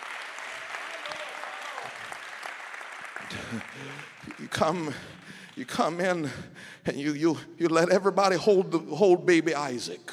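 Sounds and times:
audience clapping hands: 0:00.0 - 0:06.3
speech: 0:03.3 - 0:10.1.

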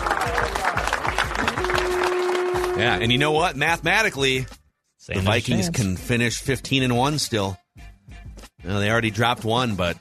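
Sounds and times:
round of applause: 0:00.0 - 0:03.2
speech: 0:02.8 - 0:07.6, 0:08.6 - 0:09.9.

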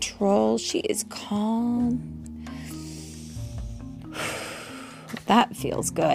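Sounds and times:
speech: 0:00.2 - 0:02.3, 0:05.3 - 0:06.1
slow breathing in and out: 0:02.3 - 0:05.1.

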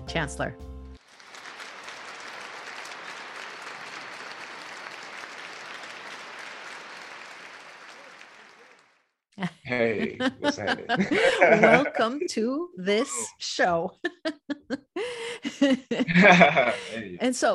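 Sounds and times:
speech: 0:00.1 - 0:00.7, 0:09.4 - 0:14.8, 0:15.6 - 0:17.5
audience applause: 0:01.0 - 0:09.1, 0:09.7 - 0:12.1, 0:16.2 - 0:17.2
laughter: 0:09.4 - 0:17.5.

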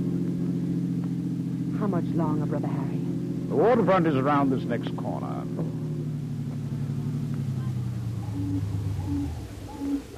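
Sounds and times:
car engine humming as the vehicle drives along: 0:00.0 - 0:10.1
speech: 0:01.8 - 0:05.7
short hooting tones: 0:07.6 - 0:10.1.

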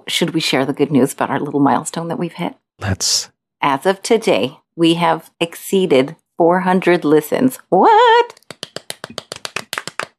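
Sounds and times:
speech: 0:00.1 - 0:09.3
hands clapping: 0:08.3 - 0:10.1.

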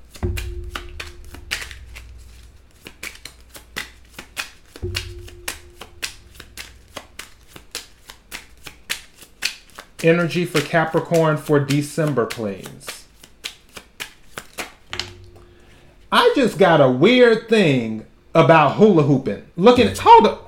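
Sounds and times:
tarot cards being shuffled by hand: 0:06.9 - 0:14.9
speech: 0:10.0 - 0:12.9, 0:16.4 - 0:20.4.

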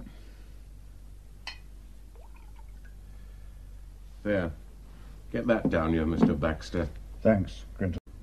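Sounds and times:
glass clink: 0:01.5 - 0:01.7
whiskey poured into a glass: 0:02.2 - 0:03.0
speech: 0:04.3 - 0:04.6, 0:05.3 - 0:08.0.

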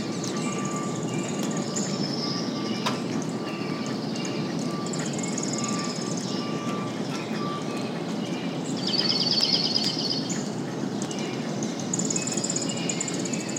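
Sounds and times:
songbirds chirping and trilling: 0:00.0 - 0:13.5.

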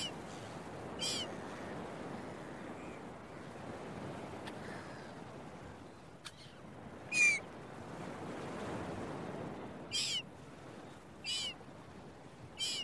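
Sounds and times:
seagulls crying: 0:00.0 - 0:00.2, 0:01.0 - 0:01.4, 0:06.4 - 0:07.4, 0:09.9 - 0:10.2, 0:11.2 - 0:11.6, 0:12.6 - 0:12.8
early morning beach waves: 0:00.0 - 0:12.8.

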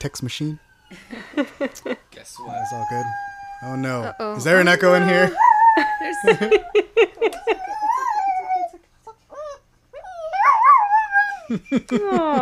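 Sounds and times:
speech: 0:00.0 - 0:07.6
laughter: 0:00.9 - 0:02.0, 0:04.8 - 0:08.0, 0:11.5 - 0:12.4
dog howling in imitation of sirens: 0:02.4 - 0:11.5.

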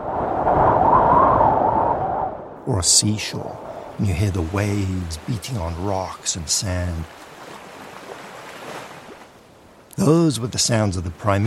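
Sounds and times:
wind whistling across bare rock: 0:00.0 - 0:05.3
speech: 0:02.7 - 0:07.3, 0:10.0 - 0:11.4.

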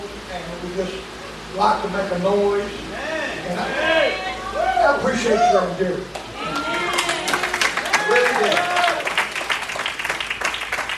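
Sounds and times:
speech: 0:00.3 - 0:06.2, 0:08.4 - 0:08.7
audience applause: 0:06.4 - 0:10.9.

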